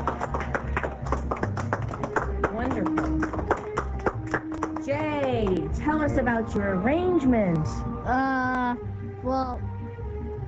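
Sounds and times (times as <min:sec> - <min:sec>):
round of applause: 0:00.0 - 0:05.7
speech: 0:05.8 - 0:09.6.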